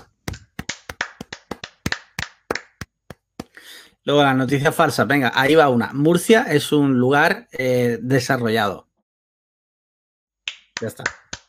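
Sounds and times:
hands clapping: 0.0 - 3.6, 10.5 - 11.4
speech: 3.7 - 8.9, 10.8 - 11.4.

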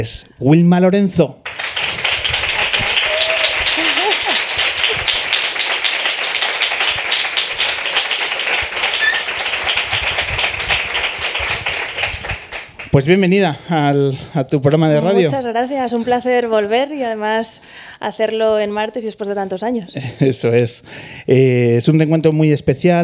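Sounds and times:
speech: 0.0 - 1.6, 13.0 - 23.0
audience applause: 1.4 - 12.9
laughter: 2.5 - 5.4.

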